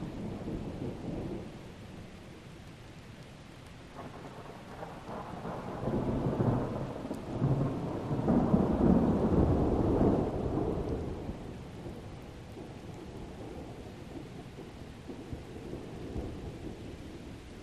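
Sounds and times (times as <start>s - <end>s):
steady very light distant thunder: 4.0s - 17.2s.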